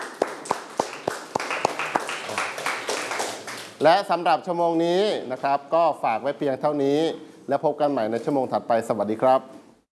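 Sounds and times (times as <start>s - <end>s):
hands clapping: 0.0s - 3.9s
speech: 3.8s - 9.6s.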